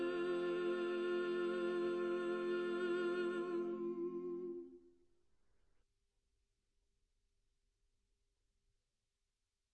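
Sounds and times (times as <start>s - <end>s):
soprano singing a hymn: 0.0s - 4.8s.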